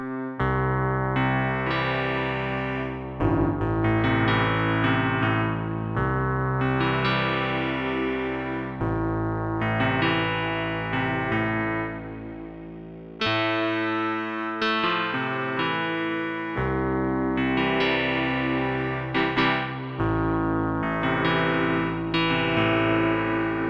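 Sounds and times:
distorted lo-fi electric piano keys: 0.0s - 23.6s.

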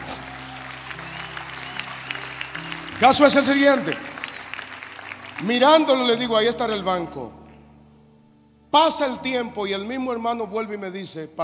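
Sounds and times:
audience applause: 0.0s - 6.0s
speech: 3.0s - 4.1s, 5.4s - 7.4s, 8.7s - 11.4s.

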